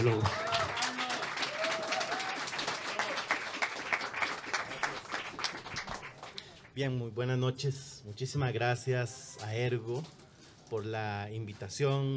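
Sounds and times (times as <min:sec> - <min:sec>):
speech: 0:00.0 - 0:00.5, 0:06.8 - 0:12.1
audience applause welcoming a speaker: 0:00.0 - 0:06.7.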